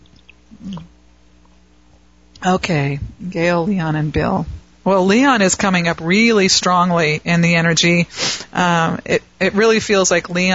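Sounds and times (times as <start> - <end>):
sipping water: 0.0 - 0.9
speech: 2.4 - 10.5.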